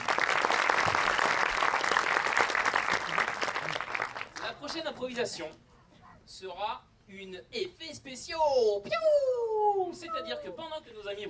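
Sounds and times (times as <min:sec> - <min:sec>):
audience applause: 0:00.0 - 0:04.8
speech: 0:04.8 - 0:05.7, 0:06.3 - 0:11.2.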